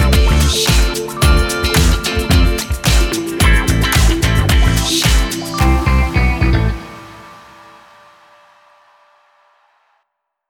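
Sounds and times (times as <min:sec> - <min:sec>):
funk music: 0:00.0 - 0:07.9.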